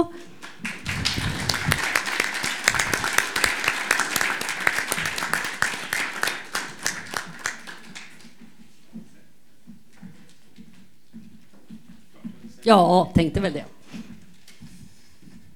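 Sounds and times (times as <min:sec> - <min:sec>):
audience applause: 0:00.0 - 0:08.4
speech: 0:12.7 - 0:13.8.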